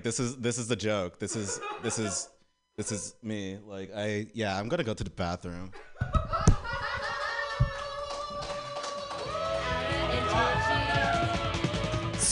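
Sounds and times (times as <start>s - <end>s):
speech: 0.0s - 5.9s
laughter: 1.3s - 2.4s, 5.8s - 8.8s
audience clapping hands: 7.0s - 11.9s.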